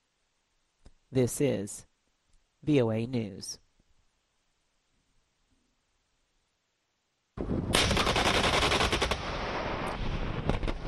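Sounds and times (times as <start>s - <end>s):
speech: 1.1s - 1.9s, 2.6s - 3.6s
machine-gun fire from US and South Korean live-fire military exercises: 7.4s - 10.8s
sharper individual gunshots from live-fire military exercises: 7.4s - 10.8s.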